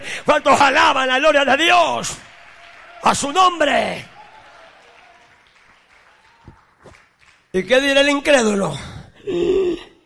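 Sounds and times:
speech: 0.2 - 2.3, 3.0 - 4.1, 7.5 - 9.9
audience clapping hands: 0.3 - 7.9.

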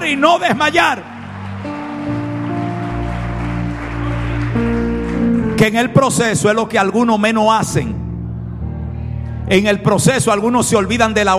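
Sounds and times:
audience applauding: 0.0 - 6.0
speech: 0.1 - 1.1, 5.6 - 8.0, 9.5 - 11.3.

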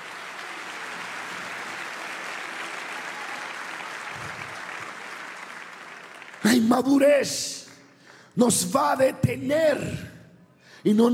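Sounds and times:
audience applause: 0.0 - 6.7
speech: 6.6 - 7.6, 8.4 - 10.1, 10.8 - 11.1.

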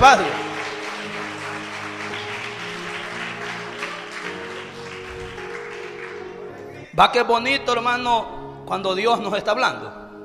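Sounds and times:
speech: 0.0 - 1.2, 7.0 - 10.0
large crowd clapping: 0.0 - 7.0.

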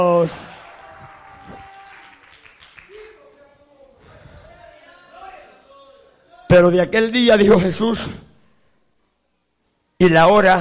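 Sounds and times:
speech: 0.0 - 0.5, 6.5 - 8.3, 10.0 - 10.5
audience applause: 0.2 - 3.4.

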